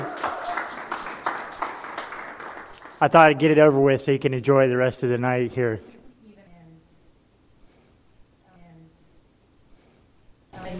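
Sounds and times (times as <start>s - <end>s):
audience applause: 0.0s - 3.4s
speech: 3.0s - 6.0s.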